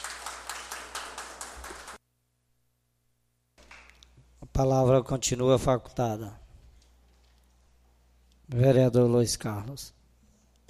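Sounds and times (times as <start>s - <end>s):
audience applause: 0.0s - 2.0s
speech: 4.6s - 6.4s, 8.5s - 10.0s.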